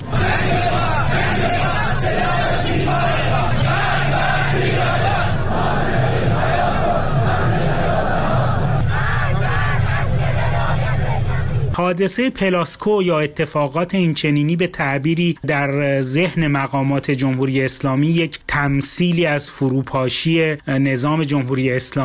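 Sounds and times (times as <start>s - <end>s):
protest crowd chanting and shouting: 0.0s - 11.8s
speech: 11.9s - 22.0s.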